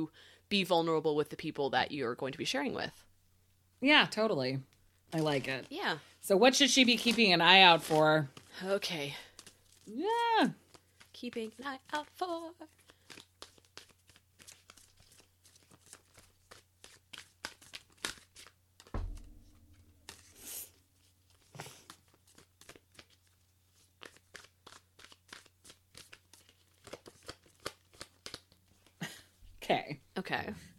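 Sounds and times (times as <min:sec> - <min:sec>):
speech: 0:00.0 - 0:03.1, 0:03.8 - 0:09.3, 0:09.9 - 0:10.6, 0:11.2 - 0:13.2, 0:29.7 - 0:30.7
tarot cards being shuffled and pulled from the deck: 0:06.9 - 0:08.6, 0:09.2 - 0:10.0, 0:10.6 - 0:18.9, 0:19.6 - 0:29.0
soft thump: 0:18.9 - 0:20.2.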